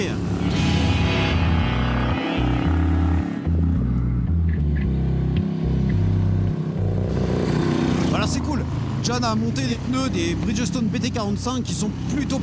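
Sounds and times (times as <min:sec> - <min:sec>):
large motorcycle engine decelerating: 0:00.0 - 0:12.4
speech: 0:09.2 - 0:12.4.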